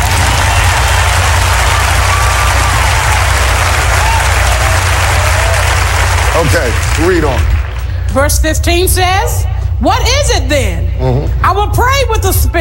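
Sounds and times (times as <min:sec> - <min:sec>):
audience clapping: 0:00.0 - 0:08.1
speech: 0:06.4 - 0:07.5, 0:08.1 - 0:12.5.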